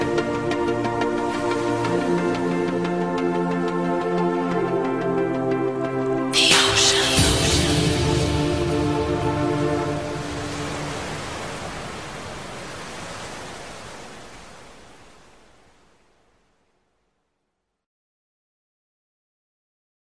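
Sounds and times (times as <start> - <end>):
chill-out music: 0.0 - 12.0.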